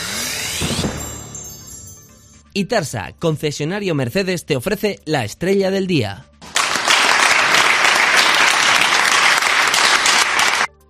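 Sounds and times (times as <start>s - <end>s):
speech: 2.6s - 6.3s
applause from many people at a council plenary session: 6.4s - 10.7s.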